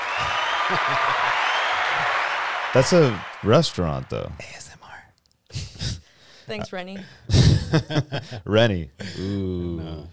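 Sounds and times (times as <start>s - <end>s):
applause: 0.0s - 4.1s
speech: 0.2s - 4.8s, 6.5s - 10.1s
laughter: 7.3s - 8.6s.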